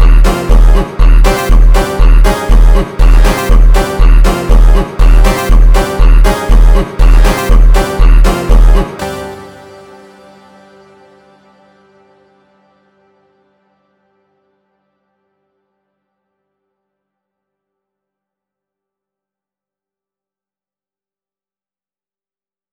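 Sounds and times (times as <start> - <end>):
phonk music: 0.0 - 10.2.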